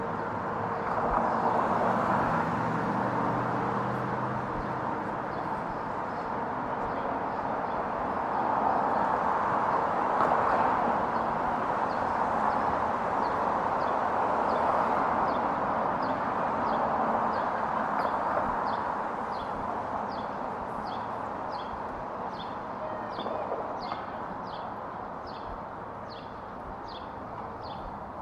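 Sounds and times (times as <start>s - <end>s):
traffic and city noise in Lafayette Square by the White House: 0.0s - 28.2s.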